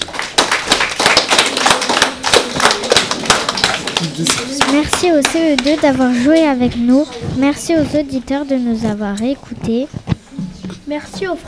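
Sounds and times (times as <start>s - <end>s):
audience applauding: 0.0s - 5.3s
speech: 4.2s - 10.1s, 10.9s - 11.4s.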